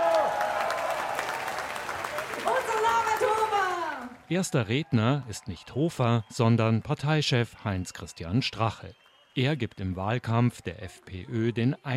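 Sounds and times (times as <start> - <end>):
many voices whooping and shouting: 0.0 - 6.2
crowd cheering and clapping in a beer tent: 0.0 - 11.9
speech: 4.3 - 11.9.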